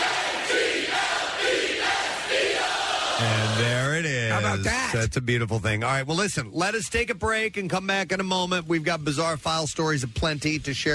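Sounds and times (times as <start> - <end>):
recorded crowd cheering and shouting: 0.0 - 4.7
speech: 4.4 - 10.9.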